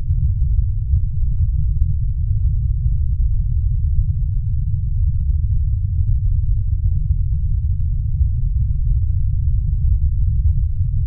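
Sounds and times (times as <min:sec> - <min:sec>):
deep earthquake rumble: 0:00.0 - 0:11.0.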